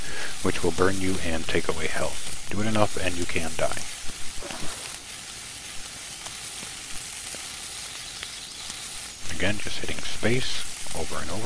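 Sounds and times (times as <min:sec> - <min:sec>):
bear meat sizzling in a skillet over a fire in a video game: 0:00.0 - 0:11.4
speech: 0:00.4 - 0:04.0, 0:09.4 - 0:11.4.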